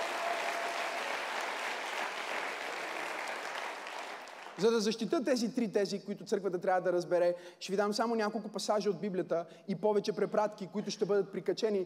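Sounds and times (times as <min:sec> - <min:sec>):
audience applause: 0:00.0 - 0:04.6
speech: 0:04.6 - 0:11.8.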